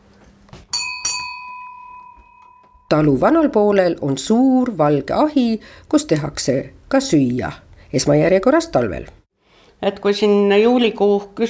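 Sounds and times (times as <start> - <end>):
bell ringing: 0.7 - 3.0
speech: 2.9 - 9.2, 9.8 - 11.4.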